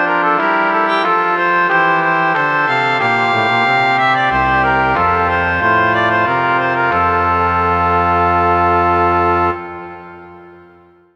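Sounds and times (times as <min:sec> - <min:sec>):
organ: 0:00.0 - 0:10.8.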